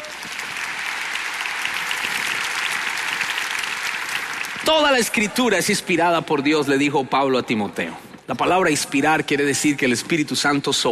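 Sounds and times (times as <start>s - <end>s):
audience applause: 0.0s - 5.4s
speech: 4.7s - 10.8s.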